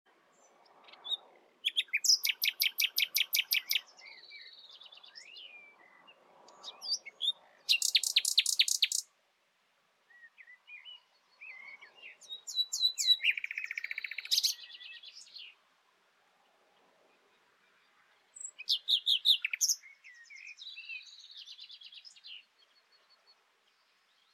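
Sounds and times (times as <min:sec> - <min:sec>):
common nightingale song: 0:00.1 - 0:09.2, 0:10.0 - 0:24.3.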